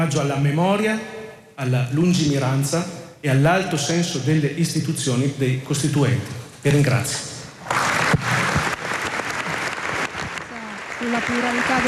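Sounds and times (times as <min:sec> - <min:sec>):
speech: 0:00.0 - 0:07.3, 0:11.1 - 0:11.8
applause in a parliamentary chamber: 0:07.6 - 0:11.8.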